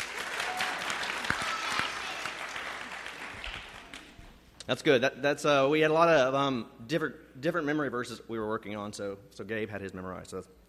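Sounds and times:
crowd applauding: 0.0s - 4.2s
speech: 4.7s - 10.6s.

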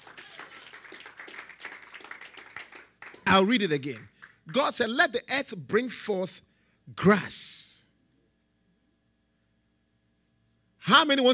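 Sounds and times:
audience clapping: 0.0s - 5.0s
speech: 3.3s - 7.6s, 11.0s - 11.3s.

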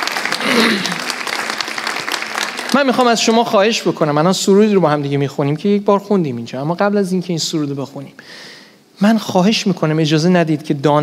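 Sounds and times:
audience clapping hands: 0.0s - 4.2s
speech: 0.6s - 1.0s, 2.8s - 11.0s.

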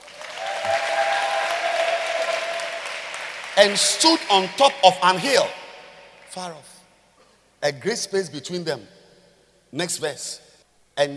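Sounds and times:
audience clapping: 0.0s - 6.4s
speech: 3.6s - 5.6s, 6.3s - 6.7s, 7.6s - 9.0s, 9.7s - 10.4s, 11.0s - 11.1s.

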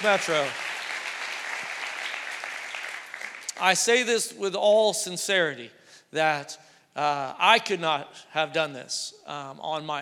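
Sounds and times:
speech: 0.0s - 0.6s, 3.6s - 10.0s
audience applause: 0.0s - 3.6s.

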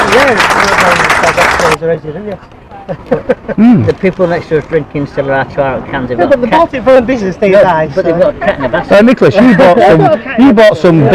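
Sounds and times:
applause: 0.0s - 1.8s
speech: 0.2s - 1.0s, 1.7s - 11.1s
laughter: 2.8s - 3.9s, 8.2s - 11.1s.

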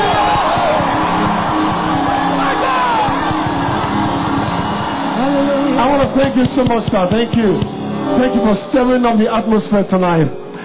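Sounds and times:
large audience shouting, whooping and screaming: 0.0s - 6.2s
speech: 6.2s - 10.4s.

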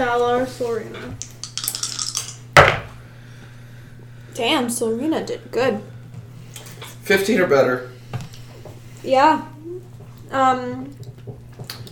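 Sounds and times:
speech: 0.0s - 1.3s, 4.4s - 5.9s, 7.1s - 7.9s, 9.0s - 9.5s, 10.3s - 11.0s
big dice rattling across a hard surface: 1.2s - 2.8s.

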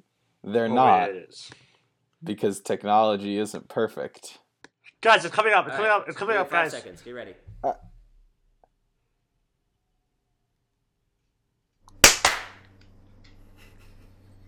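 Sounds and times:
speech: 0.4s - 1.6s, 2.2s - 4.4s, 5.0s - 7.9s
sharp loud hand claps: 11.9s - 12.7s.

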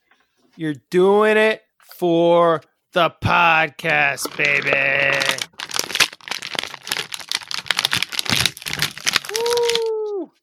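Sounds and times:
speech: 0.6s - 5.4s
person calling out: 4.2s - 5.5s, 9.3s - 10.3s
action figure torn out of its plastic blister card packaging: 4.2s - 9.9s.

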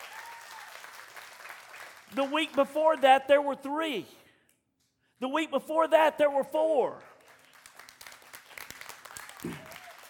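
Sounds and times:
audience clapping: 0.0s - 3.3s, 6.8s - 10.0s
speech: 2.1s - 4.2s, 5.2s - 7.1s.

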